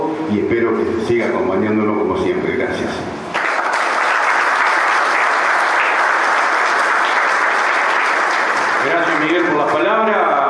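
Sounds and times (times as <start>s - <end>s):
speech: 0.3s - 3.2s
audience applause: 3.3s - 9.9s.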